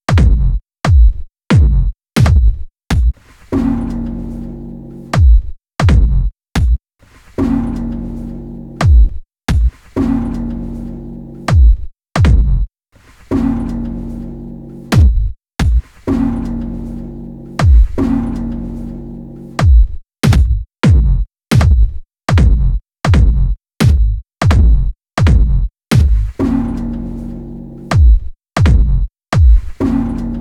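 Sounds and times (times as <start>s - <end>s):
noisy drum beats: 0.1s - 4.2s, 5.1s - 6.8s, 8.7s - 10.6s, 11.4s - 12.7s, 14.7s - 18.6s, 19.6s - 26.9s, 27.9s - 30.3s.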